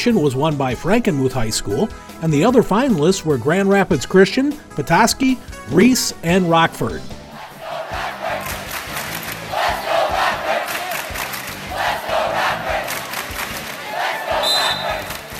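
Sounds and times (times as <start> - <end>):
speech: 0.0 - 7.2
large student crowd chanting and cheering: 7.2 - 15.3
high whistle-like tone: 14.3 - 15.2.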